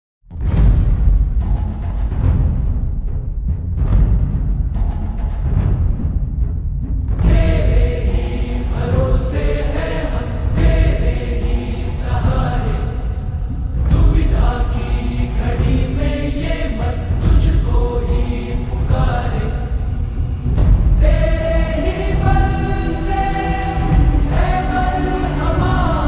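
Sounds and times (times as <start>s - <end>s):
slowed lo-fi music with reverb: 1.4s - 26.0s.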